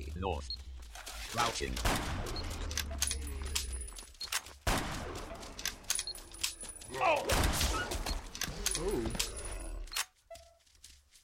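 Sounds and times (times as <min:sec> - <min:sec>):
busy dense zombie video game noise: 0:00.0 - 0:11.2
speech: 0:00.2 - 0:00.6, 0:01.3 - 0:02.4, 0:06.9 - 0:07.9, 0:08.8 - 0:09.3
gunfire in a zombie video game: 0:01.7 - 0:03.0, 0:04.6 - 0:05.6, 0:07.1 - 0:08.2.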